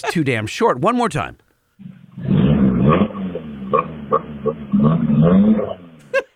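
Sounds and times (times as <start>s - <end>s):
speech: 0.0s - 1.9s, 5.2s - 5.8s
four-cylinder car engine revving: 1.8s - 6.1s
laughter: 6.0s - 6.3s.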